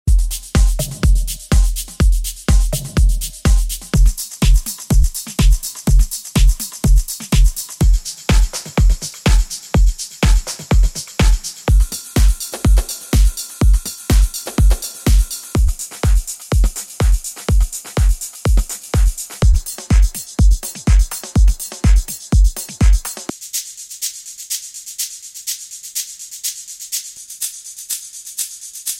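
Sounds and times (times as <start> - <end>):
melodic techno music: 0.1 - 23.3.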